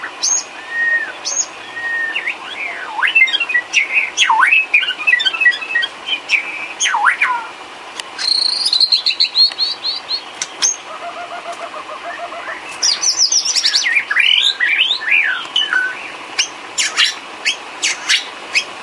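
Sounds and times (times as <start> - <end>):
bird song: 0.0 - 7.6, 8.2 - 18.8.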